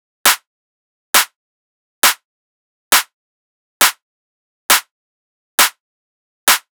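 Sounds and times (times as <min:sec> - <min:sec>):
techno clap loop at 135 BPM: 0:02.9 - 0:03.1, 0:04.7 - 0:04.9, 0:05.6 - 0:05.8, 0:06.5 - 0:06.7.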